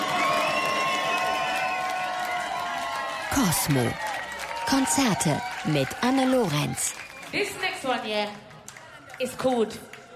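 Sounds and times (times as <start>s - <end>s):
audience crowd roar at a live show: 0.0s - 7.4s
speech: 3.3s - 4.0s, 4.7s - 8.5s, 9.2s - 9.9s.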